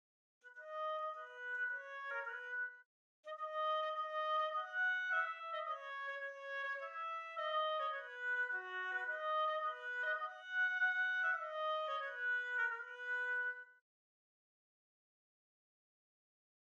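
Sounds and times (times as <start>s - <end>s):
oboe: 0.4s - 13.8s.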